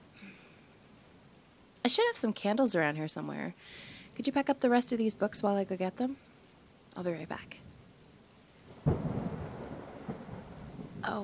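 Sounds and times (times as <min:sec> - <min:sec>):
rain hissing: 0:00.0 - 0:11.2
speech: 0:01.8 - 0:06.3, 0:07.0 - 0:07.7, 0:11.1 - 0:11.2
thunder rumbling: 0:08.7 - 0:11.2.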